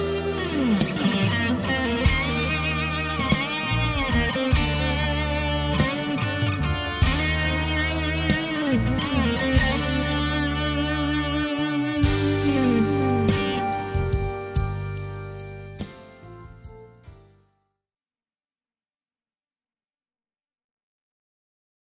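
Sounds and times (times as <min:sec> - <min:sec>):
overdriven guitar: 0:00.0 - 0:16.2.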